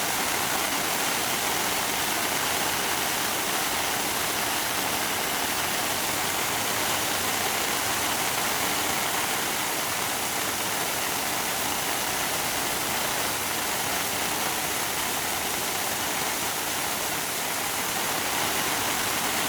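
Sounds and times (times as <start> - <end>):
fire hydrant: 0.0 - 19.4.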